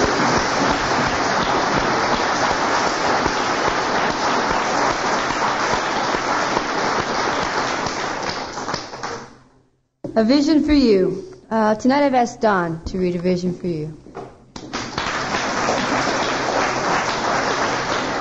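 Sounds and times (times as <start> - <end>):
audience applause: 0.0 - 9.3, 14.6 - 18.1
speech: 10.2 - 14.0.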